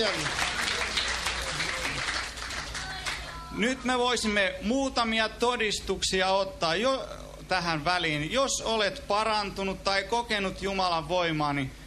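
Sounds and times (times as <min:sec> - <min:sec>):
speech: 0:00.0 - 0:00.5, 0:03.5 - 0:11.8
church congregation applause at a church meeting: 0:00.0 - 0:03.5.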